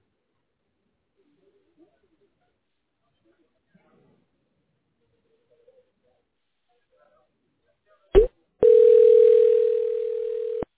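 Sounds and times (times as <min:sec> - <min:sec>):
telephone ringing tone while dialing: 0:08.6 - 0:10.7.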